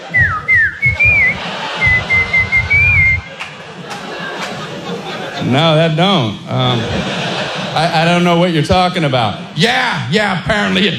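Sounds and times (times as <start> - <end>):
laughter: 0.0 - 9.3
whistled imitation of a whippoorwill bird call: 0.1 - 3.3
speech: 5.4 - 10.9.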